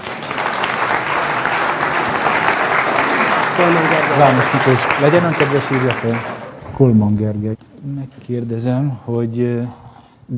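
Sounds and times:
audience applause: 0.0 - 6.8
speech: 3.6 - 10.3.

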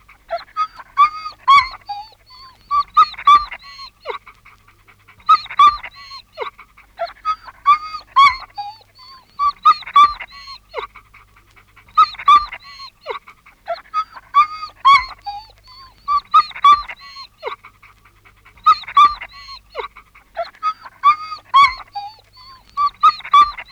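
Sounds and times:
anxious dog yelping and whimpering: 0.2 - 23.7.

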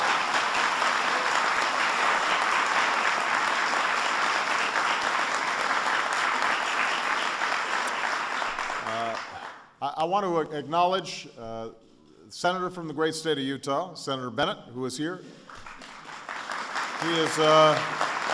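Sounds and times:
round of applause: 0.0 - 9.7, 15.4 - 18.3
speech: 10.0 - 15.4, 17.0 - 18.0.

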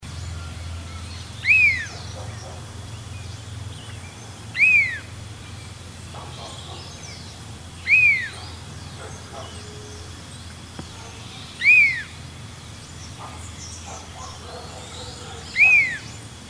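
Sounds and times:
Large Elaenia Elaenia spectabilis descending whistled calls: 0.4 - 2.4, 4.5 - 5.6, 6.3 - 8.6, 10.8 - 12.2, 14.7 - 16.4.

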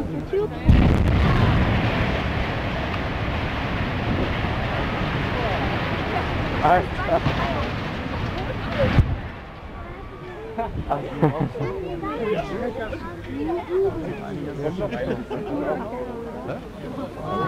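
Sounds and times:
faint voices murmuring: 0.0 - 17.4
heavy demolition blast rumble: 0.6 - 11.0
laughter: 10.2 - 12.7, 14.0 - 17.4.

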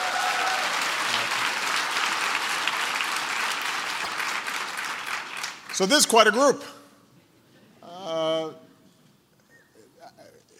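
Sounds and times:
audience applause: 0.0 - 6.1
speech: 5.8 - 6.8.

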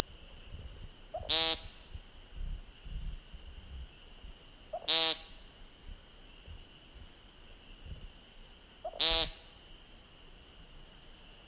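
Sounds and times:
American Woodcock Scolopax minor giving peent calls: 0.0 - 2.0, 3.7 - 8.0, 8.8 - 9.6.

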